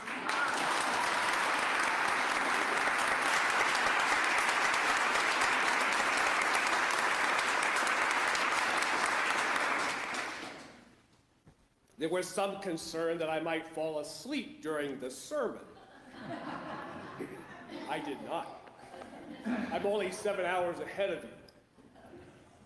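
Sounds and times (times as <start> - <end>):
audience applause: 0.0 - 10.9
speech: 12.0 - 16.5, 17.2 - 18.6, 19.4 - 21.4
laughter: 15.7 - 20.3.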